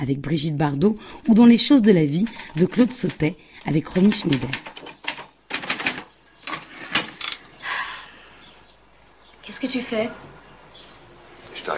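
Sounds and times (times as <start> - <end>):
speech: 0.0 - 4.7, 9.5 - 10.3, 11.6 - 11.7
typewriter keys clacking as a woman types in a film scene: 2.0 - 7.4.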